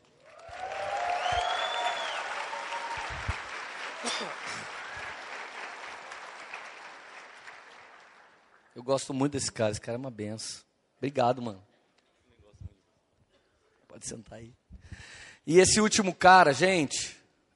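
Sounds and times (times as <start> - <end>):
audience applauding: 0.0 - 8.7
speech: 8.8 - 11.7, 14.0 - 17.5.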